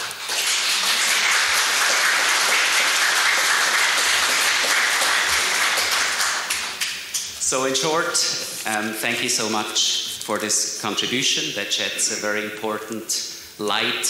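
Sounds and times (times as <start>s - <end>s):
audience applause: 0.0s - 7.0s
speech: 7.5s - 14.0s.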